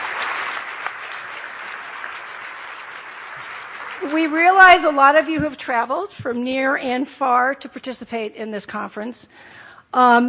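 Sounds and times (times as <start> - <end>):
audience applause: 0.0 - 5.4
speech: 4.0 - 10.2.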